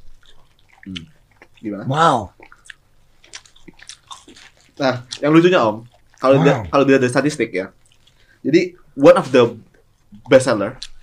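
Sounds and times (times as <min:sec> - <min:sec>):
biting and chewing a potato snack: 0:00.0 - 0:01.7, 0:02.3 - 0:06.3, 0:07.8 - 0:08.3
speech: 0:00.8 - 0:02.4, 0:04.8 - 0:07.8, 0:08.4 - 0:10.9.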